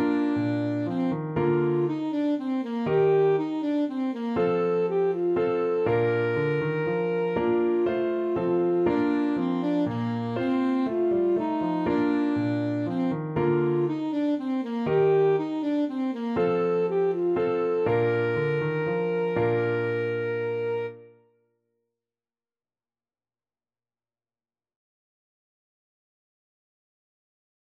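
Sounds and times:
alto saxophone playing a minuet: 0.0 - 21.2.

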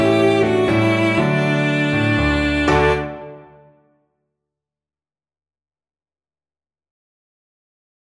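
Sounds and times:
cello duet: 0.0 - 3.6.

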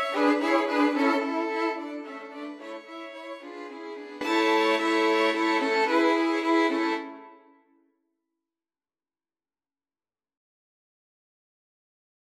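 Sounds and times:
violin quartet playing: 0.0 - 7.4.

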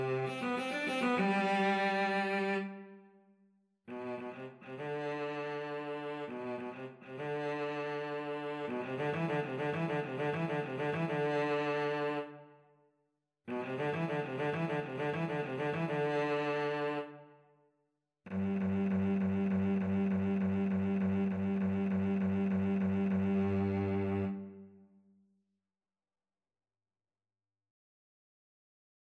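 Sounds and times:
cello duet: 0.0 - 3.0, 3.9 - 12.4, 13.5 - 17.3, 18.3 - 24.8.

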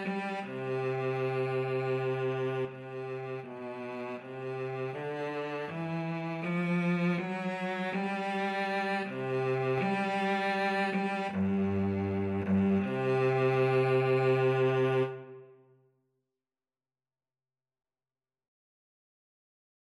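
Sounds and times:
violin and cello duet: 0.0 - 15.5.

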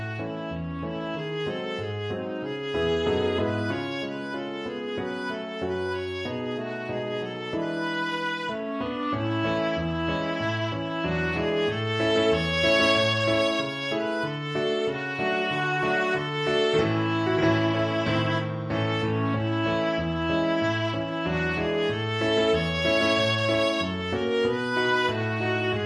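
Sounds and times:
viola playing a folk tune: 0.0 - 25.8.

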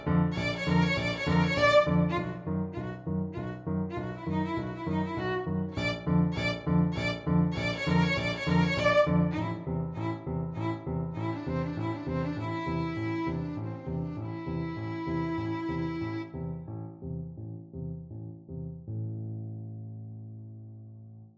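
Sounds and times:
violin duet: 0.0 - 16.4.

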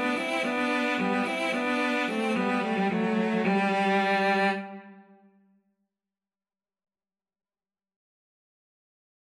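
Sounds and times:
cello duet: 0.0 - 5.1.

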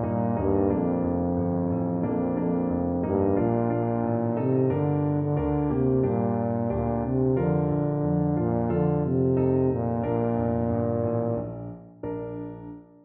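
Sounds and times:
tuba playing: 0.0 - 12.8.

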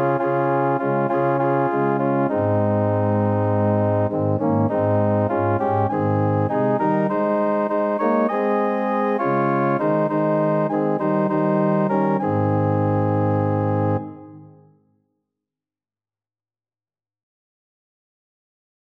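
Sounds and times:
organ: 0.0 - 14.6.

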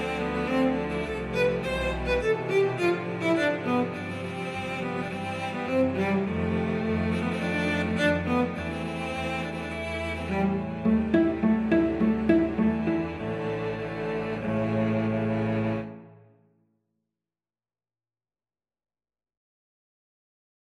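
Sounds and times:
cello ensemble playing Romanian folk dance: 0.0 - 16.1.

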